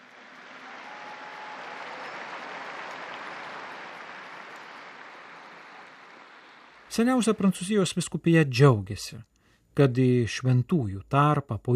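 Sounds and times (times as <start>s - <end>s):
large crowd applauding a newly beatified woman at the Pope's request: 0.0s - 7.4s
speech: 6.9s - 11.7s.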